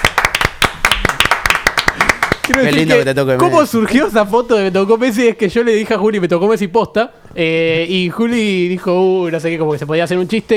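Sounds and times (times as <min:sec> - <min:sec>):
people applauding: 0:00.0 - 0:03.2
speech: 0:02.5 - 0:10.5.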